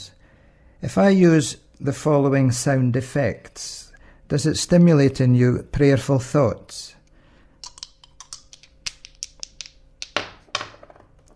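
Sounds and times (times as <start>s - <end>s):
speech: 0.8s - 7.0s
dice rattling: 7.6s - 11.3s.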